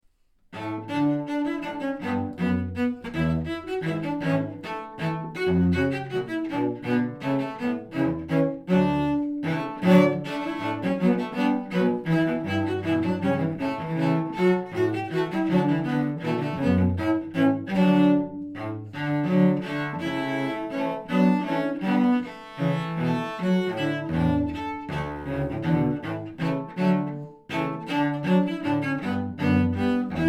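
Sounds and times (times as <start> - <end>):
cello trio: 0.5 - 30.2.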